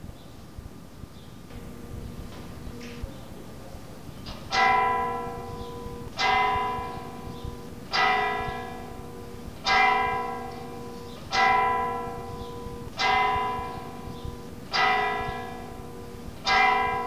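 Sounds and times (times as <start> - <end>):
church bells ringing for the Rosary: 4.2 - 17.0.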